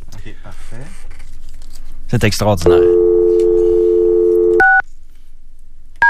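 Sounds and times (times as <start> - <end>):
speech: 0.4 - 1.2, 2.1 - 3.0
telephone dial tone: 3.0 - 4.7.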